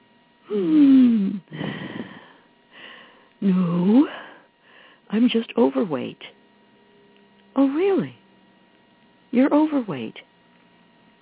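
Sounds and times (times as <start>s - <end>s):
speech: 0.5s - 1.0s, 3.4s - 4.0s, 5.1s - 6.4s, 7.6s - 8.2s, 9.3s - 10.3s
heavy wheezing breathing: 0.5s - 3.3s.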